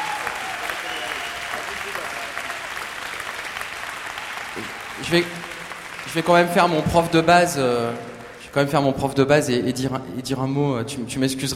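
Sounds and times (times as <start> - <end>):
audience applause: 0.0 - 8.8
speech: 4.6 - 5.4, 6.1 - 11.5.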